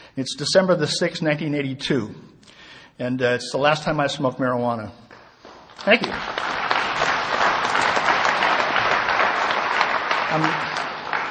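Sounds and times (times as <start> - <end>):
speech: 0.2 - 5.0, 5.8 - 6.5, 10.3 - 10.7
audience applause: 5.8 - 11.3.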